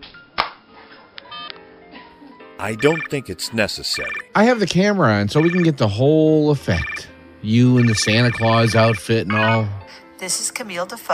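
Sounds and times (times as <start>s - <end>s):
speech: 2.6s - 11.1s
telephone speed-dialing tones: 2.8s - 3.2s, 3.9s - 4.3s, 5.4s - 5.7s, 6.8s - 7.1s, 7.8s - 9.7s.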